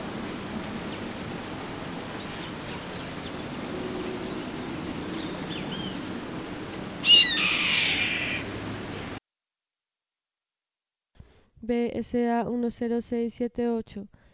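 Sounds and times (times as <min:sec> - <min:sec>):
background hiss: 0:00.0 - 0:09.2
bird raspy screech: 0:07.0 - 0:09.2
speech: 0:11.7 - 0:14.2.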